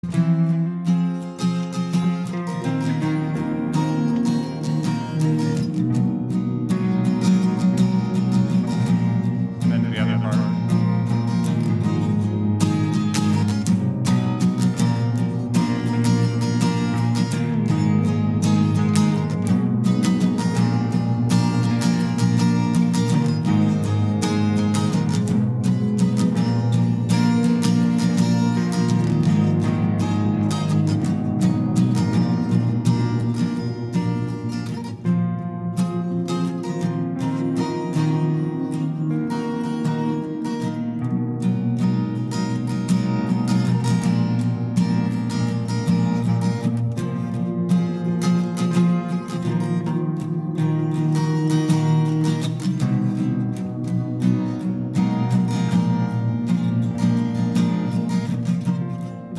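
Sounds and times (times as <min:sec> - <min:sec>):
acoustic guitar played with a capo: 0:00.0 - 0:59.3.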